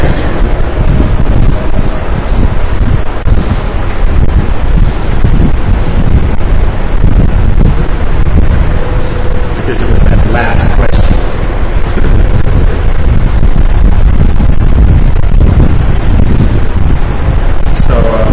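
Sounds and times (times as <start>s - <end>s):
heavy rain: 0.0s - 18.3s.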